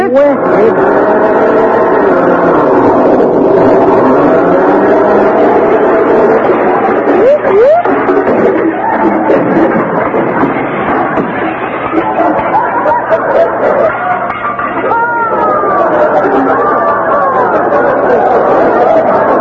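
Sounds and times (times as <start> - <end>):
rising and falling tones: 0.0 - 19.3
car engine rumble driving across a lawn, radio comedy sound effect: 0.3 - 14.8
laughter: 0.3 - 19.3.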